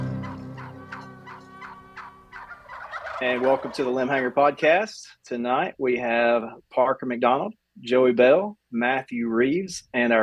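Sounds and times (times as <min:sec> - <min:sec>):
wild turkey gobbling: 0:00.0 - 0:04.9
speech: 0:03.2 - 0:10.2.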